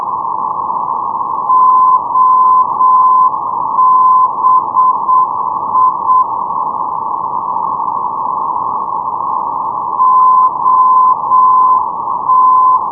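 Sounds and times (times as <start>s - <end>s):
NDB non-directional radio beacon signal on 429.0: 0.0s - 6.5s, 7.1s - 12.9s.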